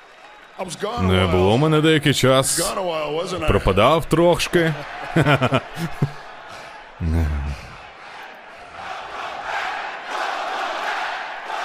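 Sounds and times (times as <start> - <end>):
speech: 0.6 - 6.2, 7.0 - 7.6
laughter: 4.7 - 7.9
wrestling crowd chanting: 4.7 - 11.6.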